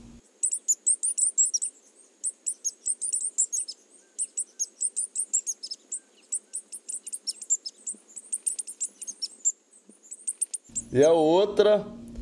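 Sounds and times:
faint low hum: 0:00.0 - 0:12.1
tanager singing high thin chirps: 0:00.3 - 0:11.0
speech: 0:11.0 - 0:12.0.

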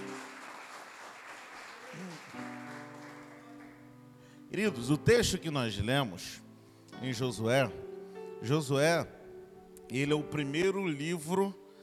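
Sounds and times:
audience applauding: 0:00.0 - 0:04.0
sustained low musical tone: 0:03.5 - 0:11.7
speech: 0:04.5 - 0:06.4, 0:07.0 - 0:09.2, 0:09.9 - 0:11.6.

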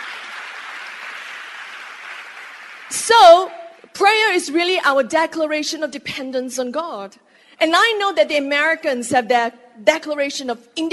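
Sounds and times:
audience applauding: 0:00.0 - 0:03.1
speech: 0:02.9 - 0:10.9.

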